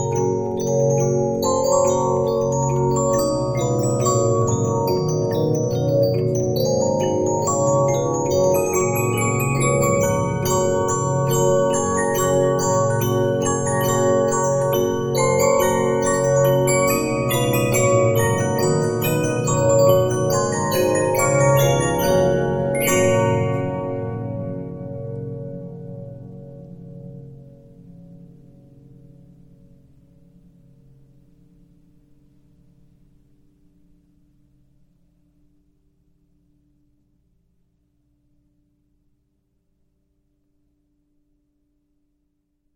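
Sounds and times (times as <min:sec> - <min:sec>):
Regina 15-inch disc music box: 0:00.0 - 0:25.0.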